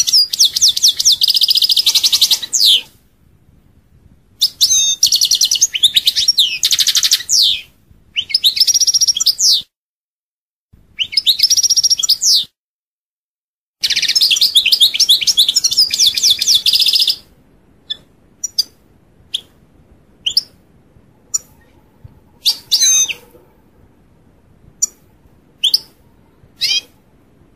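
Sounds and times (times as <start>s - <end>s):
European goldfinch singing buzzy trills: 0.0s - 2.9s, 4.4s - 9.6s, 13.8s - 19.6s, 20.2s - 20.6s, 21.2s - 23.5s, 24.7s - 27.0s.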